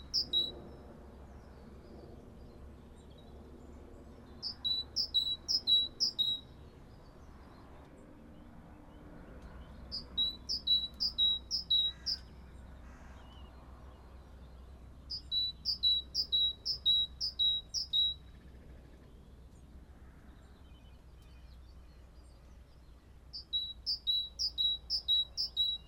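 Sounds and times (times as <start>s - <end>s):
great tit singing two-note phrases: 0.0s - 0.6s, 4.4s - 6.6s, 9.7s - 12.3s, 14.9s - 18.7s, 20.7s - 25.8s
faint hum: 0.0s - 25.8s.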